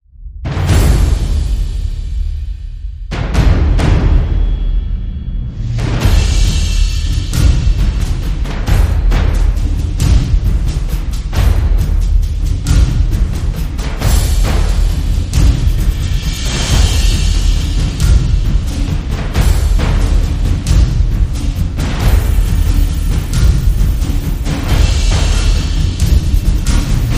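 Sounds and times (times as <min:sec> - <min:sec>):
drums: 0:00.2 - 0:27.1.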